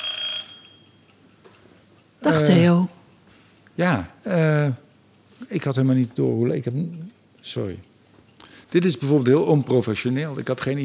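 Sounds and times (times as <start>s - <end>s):
kitchen egg timer ringing: 0.0s - 1.4s
speech: 2.2s - 3.0s, 3.8s - 4.8s, 5.4s - 7.9s, 8.7s - 10.8s.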